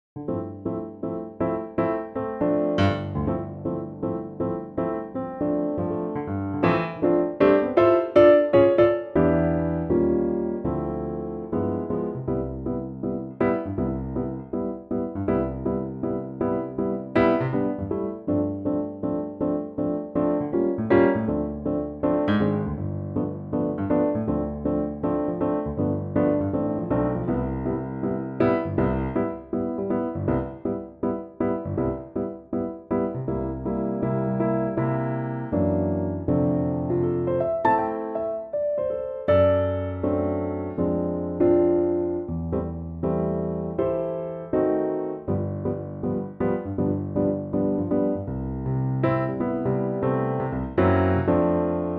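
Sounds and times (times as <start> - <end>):
piano note C: 0.2 - 51.9.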